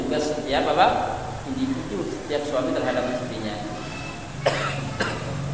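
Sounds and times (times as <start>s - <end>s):
speech: 0.1s - 3.3s
man with an untreated cough coughing harshly: 4.4s - 5.4s.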